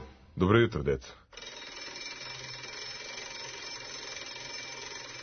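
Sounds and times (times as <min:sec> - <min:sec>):
speech: 0:00.4 - 0:01.3
school bell ringing: 0:01.3 - 0:05.2.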